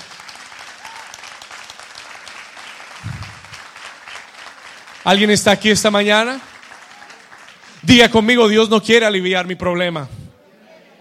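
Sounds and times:
audience applause: 0.0s - 7.9s
speech: 5.0s - 6.5s, 7.9s - 10.2s.

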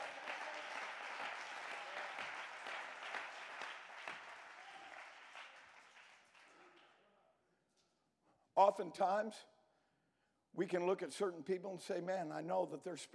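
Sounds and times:
audience clapping hands: 0.0s - 7.0s
speech: 8.6s - 9.5s, 10.6s - 13.1s.

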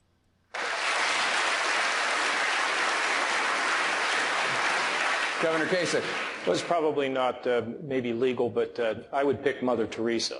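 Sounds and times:
audience applause: 0.5s - 6.8s
speech: 5.4s - 10.3s.

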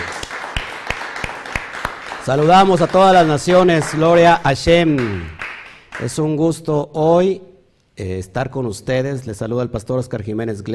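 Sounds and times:
audience applause: 0.0s - 6.2s
speech: 2.3s - 5.4s, 6.0s - 10.7s.

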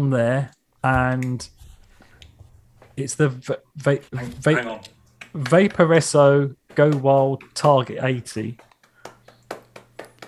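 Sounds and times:
speech: 0.0s - 1.6s, 3.0s - 8.7s
hand clapping: 4.6s - 10.2s.

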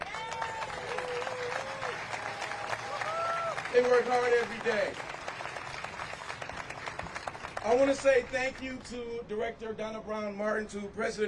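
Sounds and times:
audience applause: 0.0s - 8.6s
speech: 3.8s - 5.1s, 7.6s - 11.2s.

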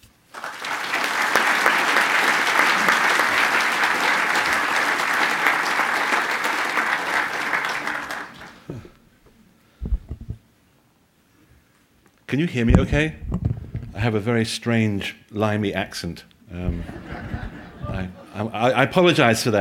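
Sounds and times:
audience applause welcoming a guest speaker to a history talk at a museum: 0.3s - 8.8s
low thumps: 9.8s - 10.4s, 12.6s - 14.2s, 16.6s - 18.2s
speech: 12.4s - 17.0s, 17.9s - 19.5s
laughter: 16.6s - 18.9s.

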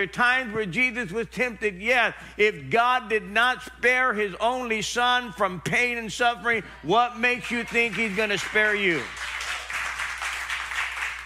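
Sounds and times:
speech: 0.0s - 9.4s
audience clapping: 7.4s - 11.2s.

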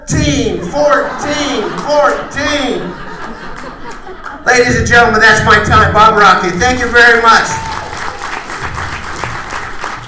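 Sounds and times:
speech: 0.2s - 3.0s, 4.4s - 7.7s
laughter: 0.5s - 4.8s
audience applause: 6.4s - 10.0s.

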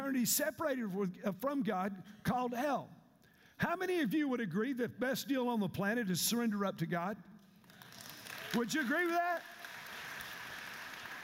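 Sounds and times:
speech: 0.1s - 3.0s, 3.6s - 7.3s, 8.5s - 9.5s
audience clapping: 7.6s - 11.2s.

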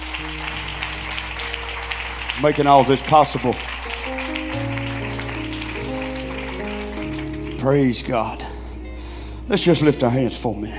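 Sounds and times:
audience clapping hands: 0.0s - 8.4s
speech: 2.4s - 3.7s, 7.6s - 8.5s, 9.5s - 10.7s.

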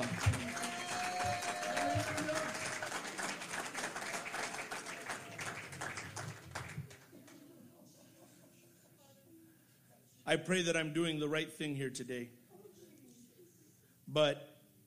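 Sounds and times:
raised voices and cheers: 0.0s - 3.2s
crowd clapping in praise: 0.0s - 7.4s
speech: 10.3s - 12.4s, 14.1s - 14.5s.

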